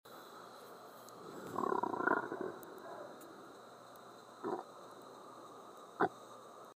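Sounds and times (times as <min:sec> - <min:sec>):
gurgling: 0:01.4 - 0:02.8, 0:04.4 - 0:04.6.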